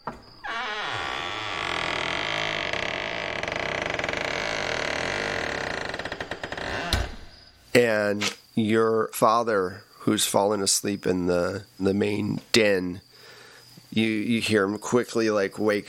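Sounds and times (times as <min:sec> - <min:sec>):
voice imitating a creaking door: 0:00.4 - 0:07.3
speech: 0:07.8 - 0:13.0, 0:14.0 - 0:15.8.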